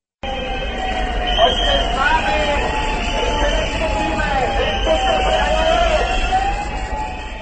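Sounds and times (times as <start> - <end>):
sirens at protest march near Pavlov Square in Prague: 0.2 - 7.4
whistles at protest march near Pavlov Square in Prague: 1.2 - 2.3, 3.1 - 6.3.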